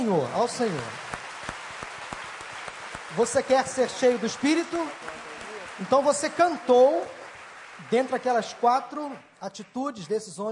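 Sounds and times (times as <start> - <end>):
audience clapping hands: 0.0 - 10.5
speech: 0.1 - 1.1, 3.1 - 5.1, 5.8 - 7.2, 7.8 - 10.5.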